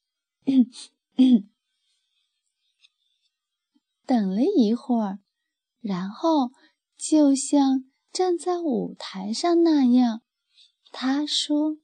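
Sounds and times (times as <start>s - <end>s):
speech: 0.4s - 1.5s, 4.1s - 5.2s, 5.8s - 10.2s, 10.9s - 11.8s
throat clearing: 1.2s - 1.5s.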